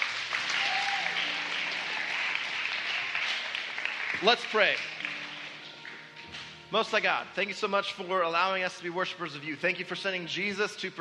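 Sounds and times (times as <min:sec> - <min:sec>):
audience applause: 0:00.0 - 0:06.2
speech: 0:04.2 - 0:05.2, 0:06.7 - 0:10.9.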